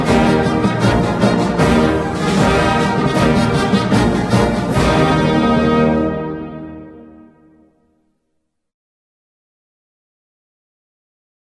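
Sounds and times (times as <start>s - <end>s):
march music: 0.0s - 8.0s.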